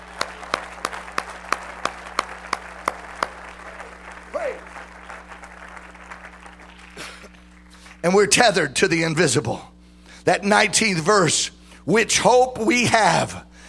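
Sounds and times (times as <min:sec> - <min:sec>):
low murmur of crowd noise: 0:00.0 - 0:07.8
audience clapping in unison: 0:00.0 - 0:08.0
speech: 0:08.0 - 0:09.7, 0:10.3 - 0:13.5.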